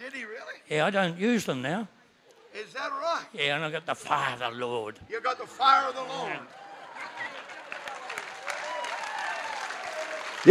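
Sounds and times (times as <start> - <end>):
speech: 0.7 - 2.0, 2.7 - 6.6
audience clapping: 6.4 - 10.4.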